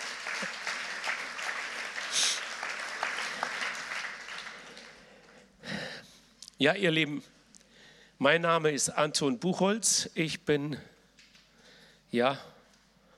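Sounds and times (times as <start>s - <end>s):
audience applause for a worship team at a church service: 0.0s - 5.4s
speech: 6.6s - 7.4s, 8.2s - 10.9s, 12.1s - 12.5s.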